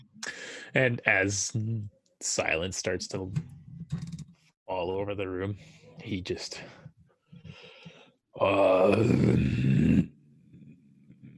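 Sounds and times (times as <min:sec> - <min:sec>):
speech: 0:00.7 - 0:04.0, 0:04.7 - 0:06.8, 0:08.4 - 0:10.0
voice imitating a deep chest growl: 0:08.4 - 0:10.2.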